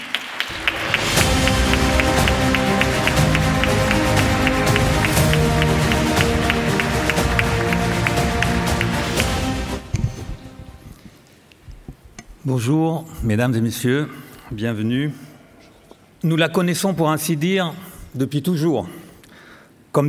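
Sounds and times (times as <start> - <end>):
audience applause: 0.0 - 10.4
speech: 12.5 - 15.3, 16.2 - 19.0.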